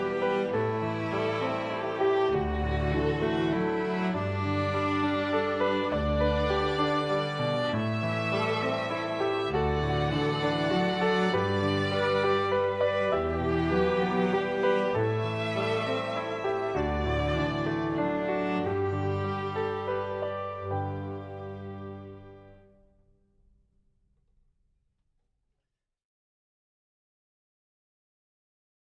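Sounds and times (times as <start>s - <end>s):
waltz: 0.0s - 22.7s.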